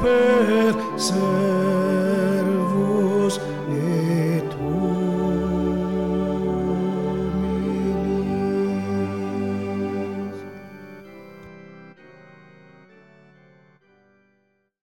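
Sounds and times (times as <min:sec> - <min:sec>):
soprano choir singing: 0:00.0 - 0:11.4.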